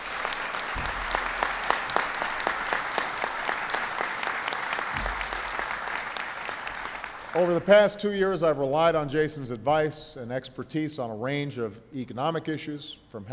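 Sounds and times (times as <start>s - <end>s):
audience applause: 0.0s - 7.8s
speech: 7.4s - 13.3s.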